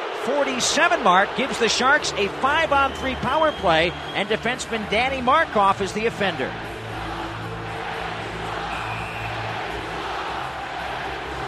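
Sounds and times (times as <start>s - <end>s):
hockey arena crowd reacting to penalty: 0.0s - 11.4s
speech: 0.2s - 6.7s.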